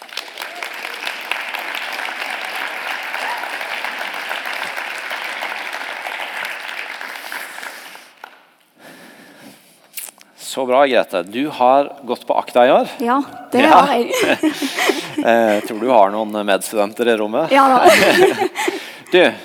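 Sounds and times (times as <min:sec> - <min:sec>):
applause: 0:00.0 - 0:08.5
speech: 0:10.6 - 0:18.5, 0:19.1 - 0:19.4
laughter: 0:13.6 - 0:16.3, 0:17.5 - 0:19.4.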